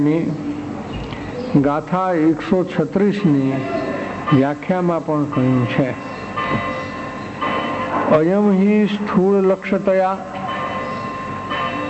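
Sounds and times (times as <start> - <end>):
speech: 0.0 - 0.5, 1.5 - 6.7, 8.1 - 10.3
wall clock striking the hour: 3.1 - 8.0, 10.2 - 11.8.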